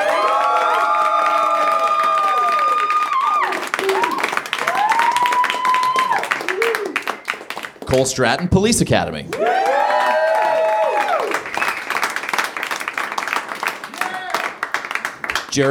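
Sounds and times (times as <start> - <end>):
audience applause: 0.0 - 8.6, 9.3 - 15.6
speech: 7.9 - 9.6.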